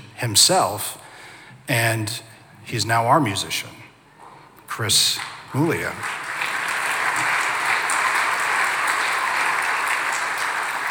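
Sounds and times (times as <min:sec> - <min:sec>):
speech: 0:00.2 - 0:01.0, 0:01.7 - 0:03.8, 0:04.8 - 0:06.2
audience applause: 0:05.8 - 0:10.8.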